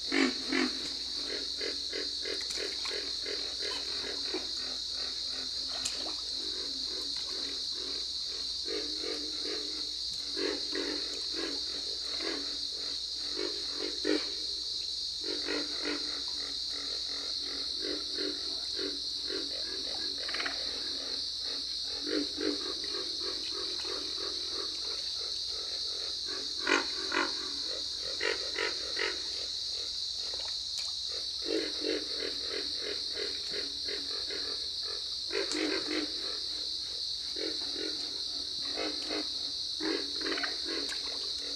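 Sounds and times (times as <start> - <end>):
pig frog calling: 0.0 - 14.5, 15.2 - 41.5.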